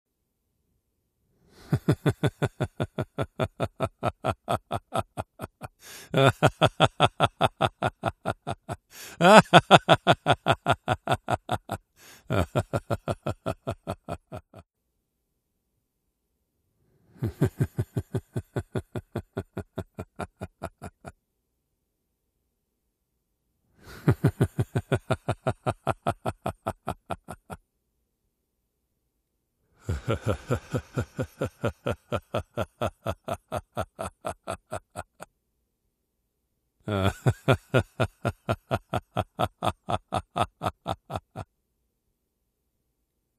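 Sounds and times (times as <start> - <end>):
person laughing: 1.6 - 14.6, 17.2 - 21.2, 23.8 - 27.6, 29.8 - 35.3, 36.9 - 41.5.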